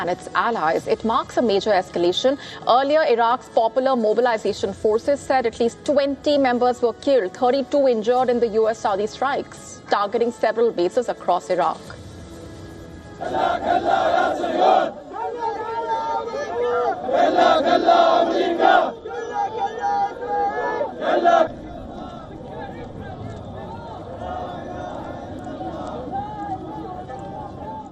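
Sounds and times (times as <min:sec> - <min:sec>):
speech: 0:00.0 - 0:12.0, 0:13.2 - 0:15.4, 0:16.7 - 0:19.0
men shouting slogans: 0:13.2 - 0:27.8.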